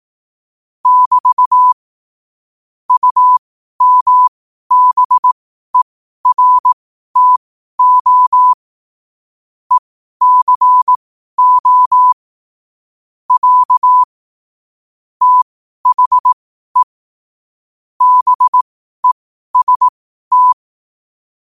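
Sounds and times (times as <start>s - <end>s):
morse code at 5 wpm: 0.8s - 1.8s, 3.0s - 5.3s, 6.2s - 8.6s, 10.2s - 12.2s, 13.3s - 14.1s, 15.2s - 16.9s, 18.0s - 20.6s.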